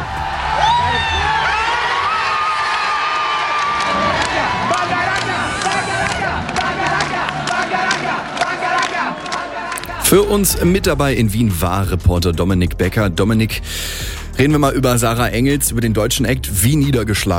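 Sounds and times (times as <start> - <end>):
stadium crowd cheering: 0.0 - 10.7
speech: 10.1 - 17.3.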